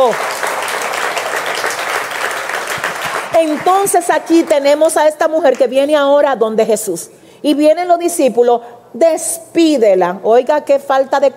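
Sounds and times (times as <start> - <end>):
speech: 0.0 - 0.3, 3.4 - 11.3
audience applauding: 0.0 - 4.0.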